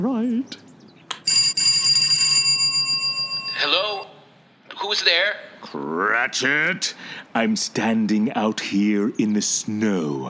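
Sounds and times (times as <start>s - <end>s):
speech: 0.0s - 0.7s, 4.8s - 10.2s
door buzzer ringing: 1.3s - 4.0s.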